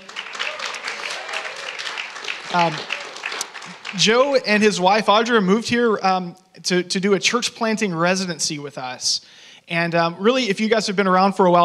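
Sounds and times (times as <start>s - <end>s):
audience applause: 0.0s - 4.6s
speech: 2.5s - 3.0s, 3.9s - 11.6s.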